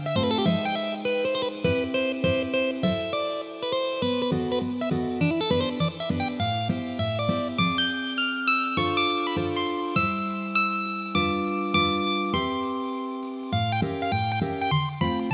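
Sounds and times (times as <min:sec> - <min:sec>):
circus guitar music: 0:00.0 - 0:15.3.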